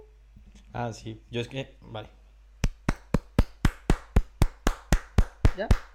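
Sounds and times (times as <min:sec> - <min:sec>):
speech: 0:00.7 - 0:02.2, 0:05.6 - 0:05.9
person clapping: 0:02.6 - 0:05.9.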